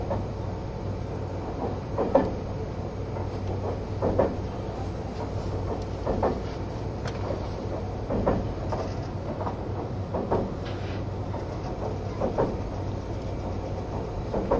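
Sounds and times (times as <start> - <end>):
engine and motor hum inside a green train car: 0.0 - 14.5
rattles and knocks from the train car: 1.4 - 14.5.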